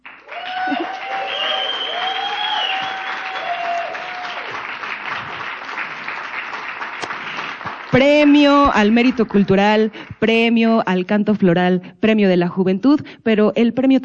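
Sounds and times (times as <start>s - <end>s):
audience applause: 0.0s - 8.6s
speech: 8.0s - 14.0s.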